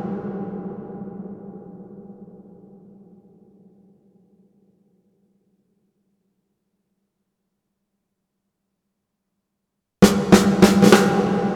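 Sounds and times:
Sony DRE 2000 real snare sequence: 0:10.0 - 0:11.5.

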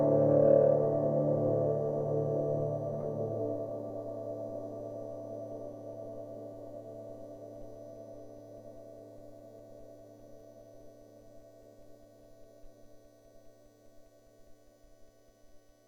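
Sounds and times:
piano with dark reverb effect: 0:00.0 - 0:11.8.

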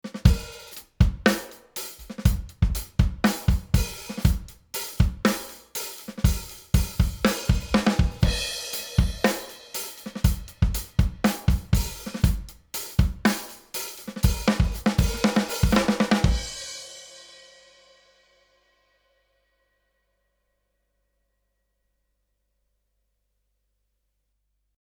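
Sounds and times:
drums through LA 500 compressor: 0:00.1 - 0:16.7.

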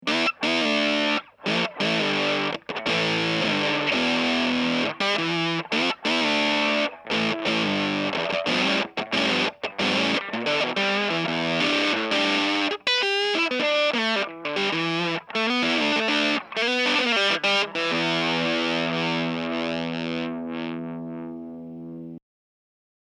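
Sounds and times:
fuzz distortion sputtering: 0:00.1 - 0:21.9.

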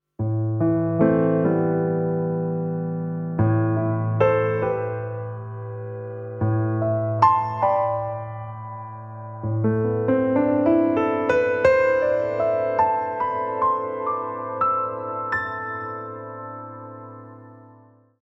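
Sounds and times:
gated piano: 0:00.2 - 0:18.2.

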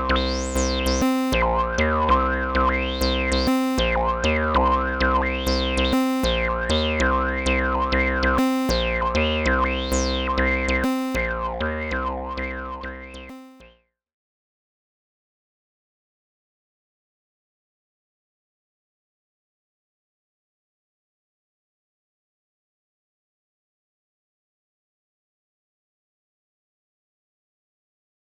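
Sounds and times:
keyboard playing: 0:00.0 - 0:13.4.

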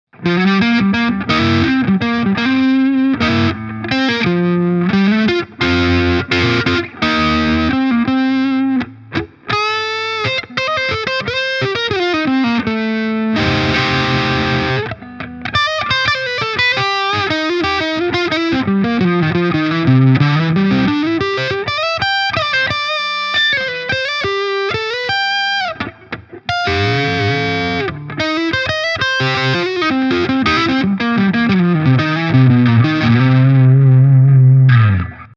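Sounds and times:
Hagstrom Alvar guitar distorted on neck pickup: 0:00.1 - 0:35.3.

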